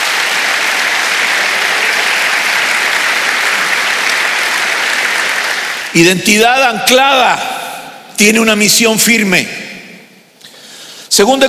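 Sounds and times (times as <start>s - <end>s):
audience clapping hands: 0.0s - 6.0s
speech: 6.0s - 7.5s, 8.2s - 9.6s, 11.2s - 11.4s.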